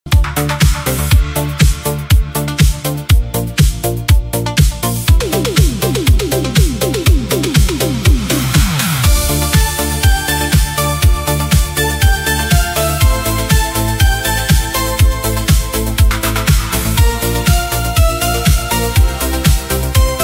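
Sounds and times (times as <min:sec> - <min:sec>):
modern disco music: 0:00.1 - 0:20.2.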